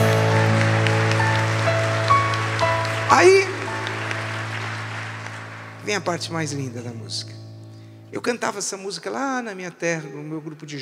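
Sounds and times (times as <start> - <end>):
crowd applauding: 0.0 - 6.8
speech: 3.1 - 3.5, 5.9 - 7.4, 8.1 - 10.7.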